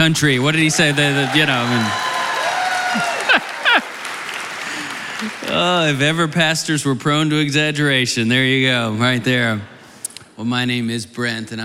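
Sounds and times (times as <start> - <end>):
speech: 0.0 - 2.1, 2.9 - 3.1, 5.2 - 9.7, 10.4 - 11.6
audience golf clap: 0.7 - 5.9
laughter: 2.8 - 5.6.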